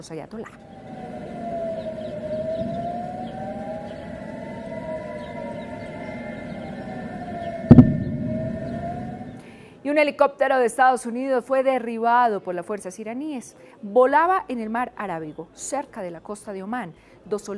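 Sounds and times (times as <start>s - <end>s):
speech: 0.0s - 0.8s, 10.0s - 17.5s
civil defense air raid siren wailing: 0.5s - 9.4s
loud thump: 7.7s - 9.1s
low rumble: 7.7s - 9.4s.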